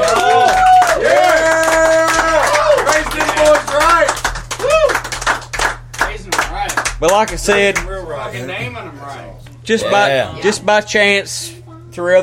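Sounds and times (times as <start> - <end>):
round of applause from audience: 0.0 - 7.8
speech: 7.1 - 12.2.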